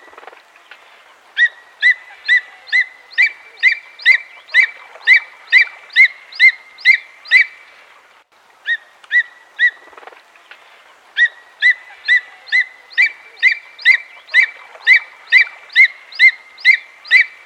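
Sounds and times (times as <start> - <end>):
bird chirping: 1.4 - 7.6, 11.2 - 17.4.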